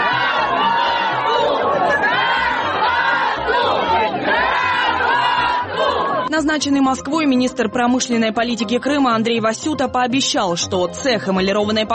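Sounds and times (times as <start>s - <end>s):
large crowd of protesters shouting together: 0.0s - 6.3s
speech: 6.4s - 11.9s.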